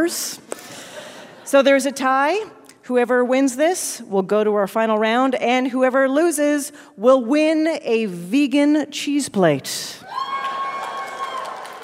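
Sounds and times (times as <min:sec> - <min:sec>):
speech: 0:00.0 - 0:00.6, 0:01.5 - 0:10.0
audience cheering: 0:10.1 - 0:11.8.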